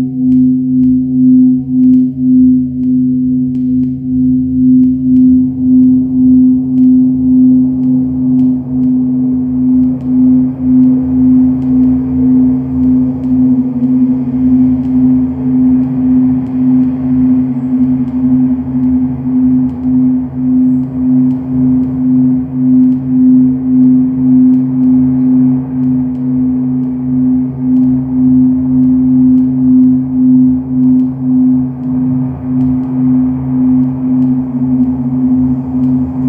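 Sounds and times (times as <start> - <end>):
noise upstairs: 0.3 - 36.2.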